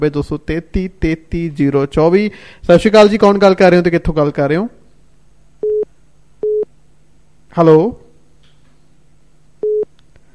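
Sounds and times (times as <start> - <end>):
speech: 0.0 - 4.8, 7.5 - 8.0
telephone line beep as a radio caller fails to connect: 5.6 - 6.7, 9.6 - 9.9.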